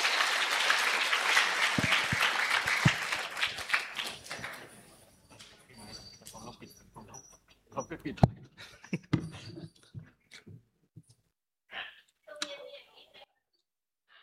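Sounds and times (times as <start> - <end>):
crowd applauding: 0.0 - 5.0.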